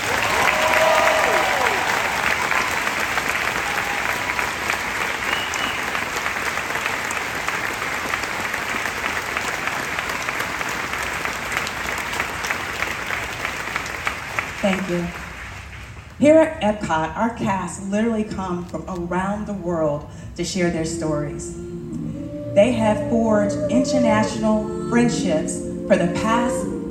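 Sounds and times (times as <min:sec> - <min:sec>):
cheers: 0:00.0 - 0:14.8
crowd applauding: 0:00.0 - 0:16.1
speech: 0:14.9 - 0:15.2, 0:16.2 - 0:21.7, 0:22.6 - 0:26.8.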